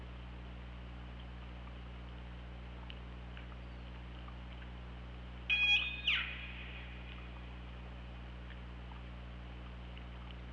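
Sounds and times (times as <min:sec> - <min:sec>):
steady low background hum: 0:00.0 - 0:10.5
killer whale call: 0:05.5 - 0:07.0.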